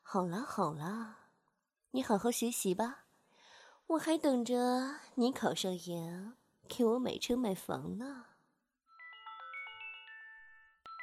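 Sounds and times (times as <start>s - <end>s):
speech: 0.1s - 1.2s, 1.9s - 3.0s, 3.9s - 8.3s
alarm clock ringing with an electronic melodic chime: 8.9s - 11.0s.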